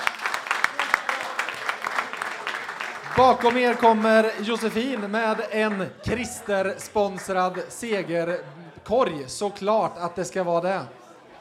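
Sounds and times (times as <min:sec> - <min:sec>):
applause: 0:00.0 - 0:07.7
laughter: 0:03.0 - 0:10.2
speech: 0:03.2 - 0:11.0.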